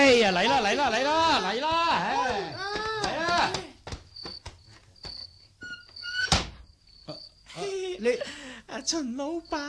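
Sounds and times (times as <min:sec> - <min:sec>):
speech: 0:00.1 - 0:02.5, 0:08.0 - 0:09.6
sharp knocks on a door: 0:01.7 - 0:04.6.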